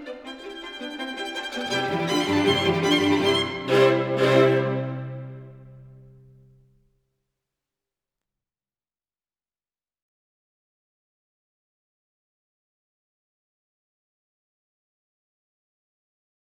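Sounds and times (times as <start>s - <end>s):
string quartet playing presto in C major: 0.0s - 6.4s.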